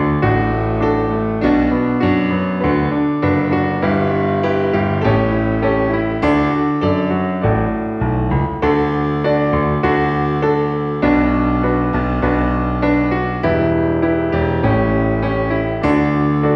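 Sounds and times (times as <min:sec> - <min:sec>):
piano piece: 0:00.0 - 0:16.5.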